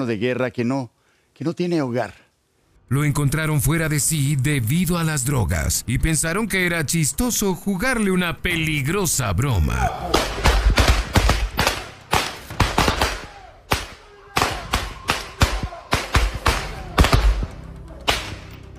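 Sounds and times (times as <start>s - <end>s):
speech: 0.0s - 2.2s, 2.9s - 10.6s
firecrackers and explosive poppers exploding: 10.1s - 17.4s.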